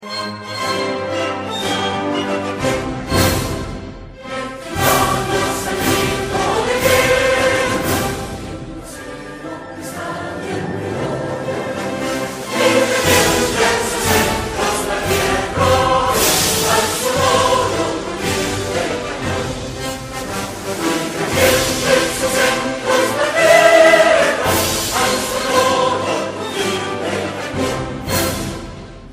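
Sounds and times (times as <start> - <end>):
national anthem music: 0.0 - 29.1.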